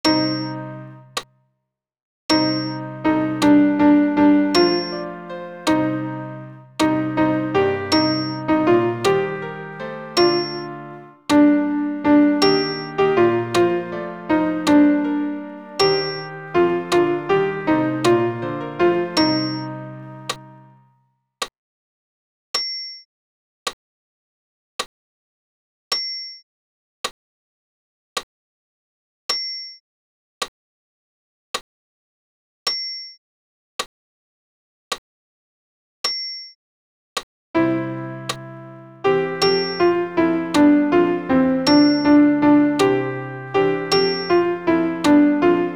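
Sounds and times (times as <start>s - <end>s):
alto piano accompaniment for a Credo: 0.0s - 1.3s, 2.3s - 20.9s, 37.6s - 45.7s.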